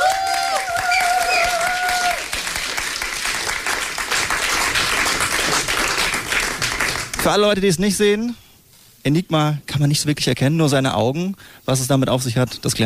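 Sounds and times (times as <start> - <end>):
audience applause: 0.0 - 7.2
speech: 7.2 - 8.4, 9.0 - 12.8.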